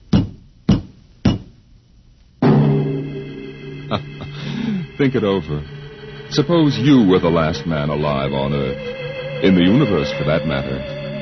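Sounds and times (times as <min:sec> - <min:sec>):
firm knocks on a door: 0:00.1 - 0:01.6
soft hit: 0:02.4 - 0:06.5
loud sustained musical chord: 0:02.4 - 0:11.2
speech: 0:03.9 - 0:04.1, 0:05.0 - 0:11.0.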